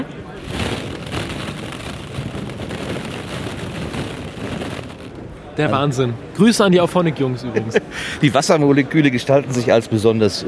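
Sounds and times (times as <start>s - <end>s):
hand stirring plastic balls in a ball pit: 0.0s - 5.4s
speech: 5.6s - 10.4s
laughter: 7.3s - 8.0s.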